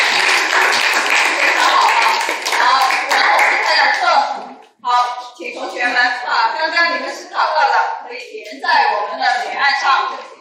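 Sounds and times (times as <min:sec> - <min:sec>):
roomful of students clapping in a classroom: 0:00.0 - 0:04.1
speech: 0:05.8 - 0:10.2.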